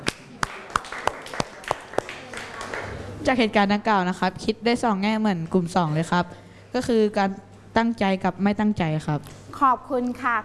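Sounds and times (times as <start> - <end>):
students clapping: 0.0 - 3.1
speech: 3.2 - 10.4.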